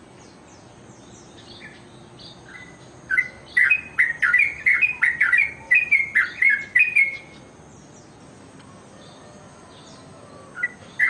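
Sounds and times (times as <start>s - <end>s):
bird chirping song: 0.0s - 11.0s.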